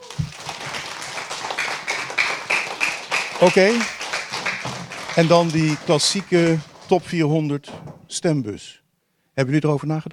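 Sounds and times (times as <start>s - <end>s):
audience applause: 0.0s - 7.3s
speech: 3.4s - 4.0s, 5.2s - 8.8s, 9.4s - 10.1s.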